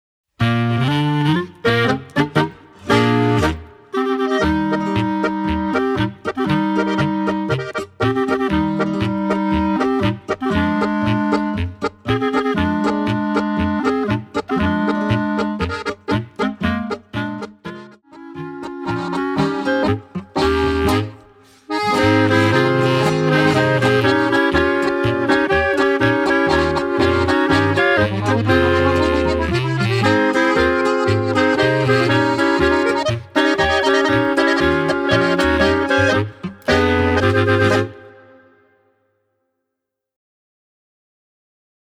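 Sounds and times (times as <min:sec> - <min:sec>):
polka music: 0:00.4 - 0:38.8.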